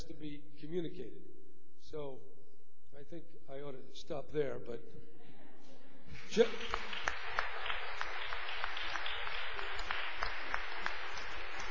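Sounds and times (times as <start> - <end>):
speech: 0.2 - 5.4, 6.1 - 7.1
audience applause at the end of a talk: 6.1 - 11.6.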